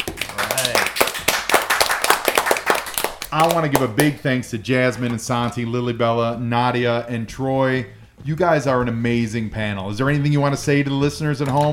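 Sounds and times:
round of applause: 0.0s - 4.1s
speech: 3.4s - 11.7s.

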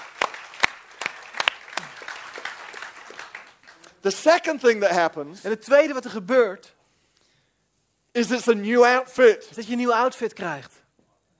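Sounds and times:
audience clapping: 0.0s - 4.6s
speech: 4.0s - 6.8s, 8.2s - 10.8s.

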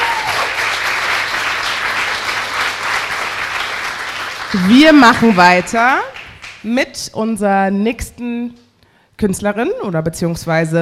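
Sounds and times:
audience applause: 0.0s - 6.6s
speech: 4.5s - 8.6s, 9.2s - 10.7s.

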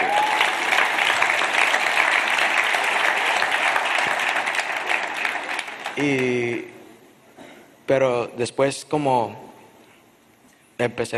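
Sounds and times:
crowd applause: 0.0s - 6.5s
speech: 6.0s - 6.7s, 7.9s - 9.4s, 10.8s - 11.1s.

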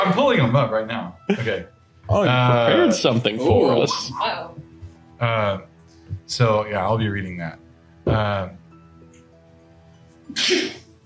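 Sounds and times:
speech: 0.1s - 8.6s, 10.3s - 10.8s
loud sneezes: 10.3s - 10.9s.

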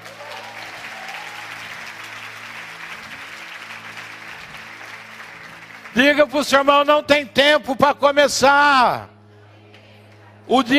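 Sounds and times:
audience applauding: 0.0s - 6.6s
speech: 6.0s - 9.1s, 10.5s - 10.7s.

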